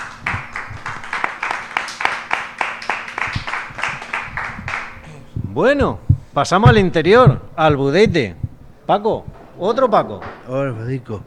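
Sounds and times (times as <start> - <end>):
audience applauding: 0.0 - 7.4
speech: 5.6 - 11.2.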